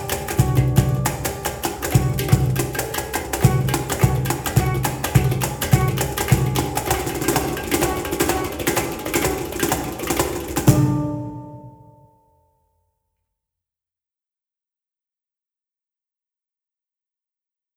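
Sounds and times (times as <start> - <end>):
cajon: 0.0 - 12.0
hang drum: 0.0 - 12.2.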